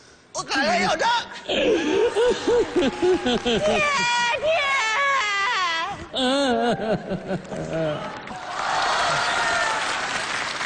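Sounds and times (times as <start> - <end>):
speech: 0.4 - 4.8, 6.1 - 8.2
laughter: 1.5 - 8.2
audience applause: 2.4 - 4.2, 7.4 - 10.6.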